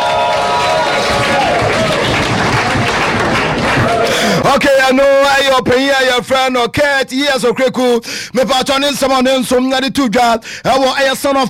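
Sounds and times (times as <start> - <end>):
crowd clapping: 0.0 - 4.6
speech: 4.5 - 11.4.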